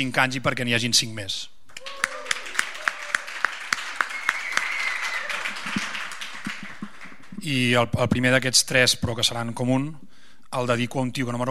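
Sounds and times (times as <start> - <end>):
speech: 0.0 - 2.0, 7.4 - 11.4
audience applause: 1.8 - 7.4.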